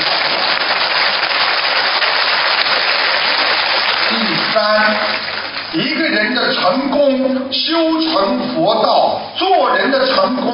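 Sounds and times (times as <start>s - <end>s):
crowd applause: 0.0s - 6.4s
speech: 6.5s - 10.5s.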